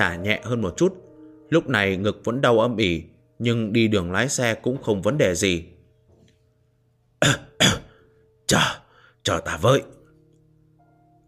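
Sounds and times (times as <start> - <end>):
speech: 0.0 - 5.7, 7.2 - 7.4, 8.5 - 10.0
dry coughing: 7.2 - 8.8.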